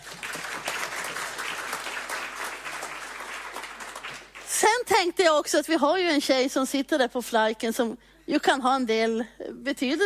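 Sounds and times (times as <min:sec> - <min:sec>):
audience applause: 0:00.0 - 0:04.5
speech: 0:04.9 - 0:10.0.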